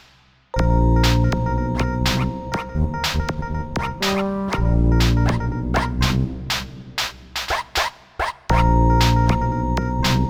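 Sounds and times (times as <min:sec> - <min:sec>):
MIDI ditty: 0:00.6 - 0:06.7, 0:08.5 - 0:10.2.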